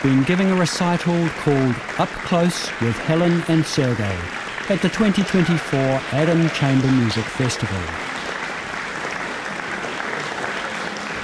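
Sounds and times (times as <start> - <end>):
speech: 0.0 - 8.1
audience applause after a recital: 0.0 - 11.2.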